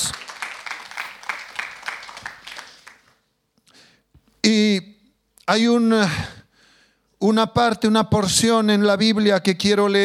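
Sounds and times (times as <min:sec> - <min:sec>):
audience clapping: 0:00.0 - 0:03.2
speech: 0:04.5 - 0:04.9, 0:05.5 - 0:06.4, 0:07.2 - 0:10.0.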